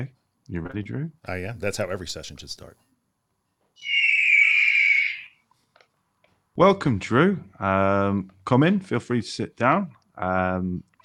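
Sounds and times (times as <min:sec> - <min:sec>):
speech: 0:00.0 - 0:02.9, 0:03.8 - 0:04.0, 0:06.6 - 0:10.9
eagle cry sound effect: 0:03.8 - 0:05.4.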